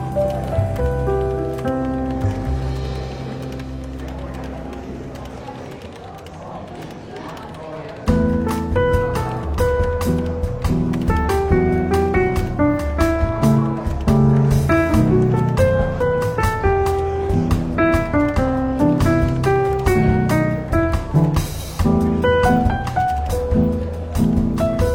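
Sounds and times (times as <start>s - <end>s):
soft relaxed jazz in a London bookshop café: 0.0s - 5.4s, 8.1s - 24.9s
brushed drums: 8.1s - 24.9s.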